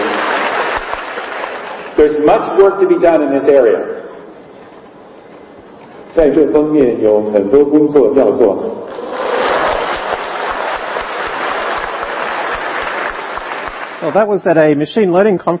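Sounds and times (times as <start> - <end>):
spontaneous audience applause: 0.0 - 2.0, 8.9 - 14.3
speech: 2.0 - 4.0, 6.1 - 8.8, 14.0 - 15.5.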